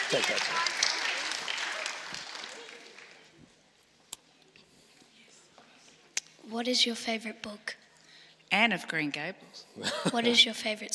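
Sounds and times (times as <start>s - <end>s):
audience round of applause: 0.0s - 3.3s
speech: 0.1s - 0.8s, 6.5s - 7.8s, 8.5s - 10.9s.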